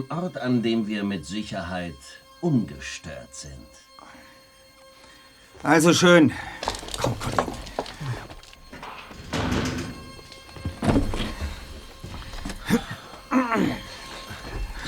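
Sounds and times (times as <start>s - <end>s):
speech: 0.0s - 3.8s, 5.6s - 7.5s
door creaking: 6.5s - 14.8s
door swinging shut with heavy thunks: 6.6s - 13.3s.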